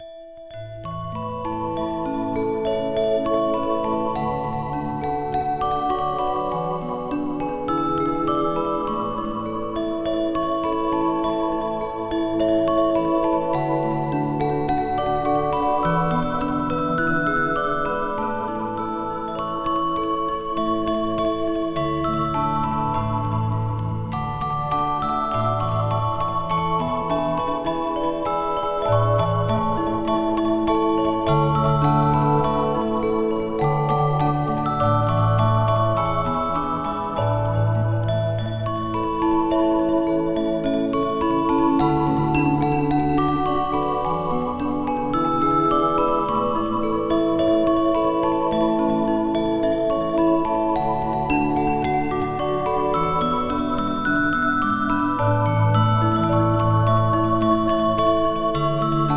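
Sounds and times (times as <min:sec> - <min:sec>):
instrumental Christmas music: 0:00.0 - 0:59.1.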